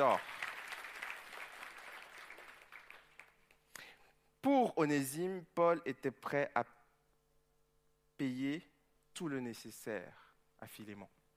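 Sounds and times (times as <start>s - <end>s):
speech: 0.0s - 0.4s, 4.4s - 6.8s, 8.2s - 11.2s
audience applauding: 0.0s - 3.6s.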